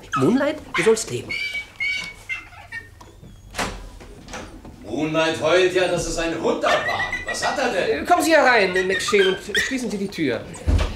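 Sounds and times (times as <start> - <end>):
chicken clucking: 0.0 - 3.4, 6.5 - 10.1
speech: 0.2 - 1.6, 5.0 - 10.7.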